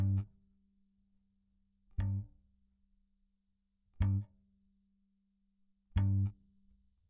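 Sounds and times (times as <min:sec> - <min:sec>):
bass: 0:00.0 - 0:01.0, 0:01.8 - 0:03.0, 0:03.8 - 0:04.8, 0:05.9 - 0:07.0.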